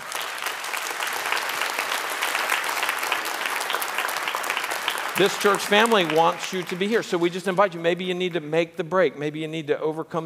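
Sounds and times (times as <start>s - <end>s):
audience applause: 0.0s - 7.7s
speech: 5.2s - 10.2s.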